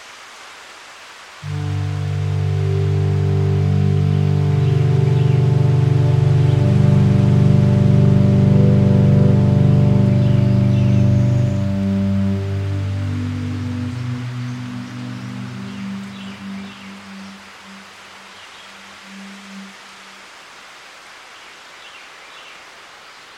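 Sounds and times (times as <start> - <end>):
soft hiss: 0.0 - 23.3
deep humming drone on the Palm Hammock Trail at Merritt Island: 1.4 - 17.3.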